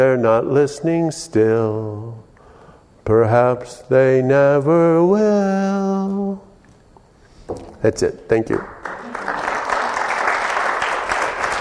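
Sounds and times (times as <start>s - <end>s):
speech: 0.0s - 2.2s, 3.1s - 6.5s, 7.5s - 9.2s
audience applause after a song: 8.7s - 11.5s.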